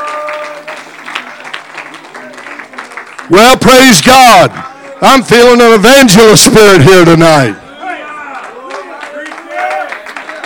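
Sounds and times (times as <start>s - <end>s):
audience clapping hands: 0.0s - 6.2s, 8.3s - 10.4s
speech: 3.3s - 7.6s.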